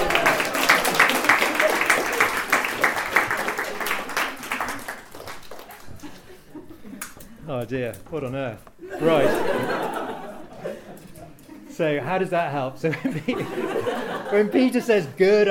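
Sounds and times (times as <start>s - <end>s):
audience applause: 0.0s - 6.5s
laughter: 0.0s - 7.5s, 8.8s - 12.0s, 12.8s - 15.4s
speech: 7.7s - 10.1s, 11.8s - 15.4s.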